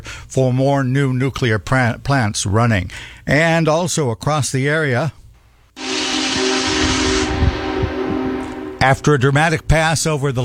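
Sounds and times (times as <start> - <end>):
speech: 0.3 - 5.2, 8.8 - 10.4
steam whistle of the nation's largest steam engine: 5.8 - 9.8.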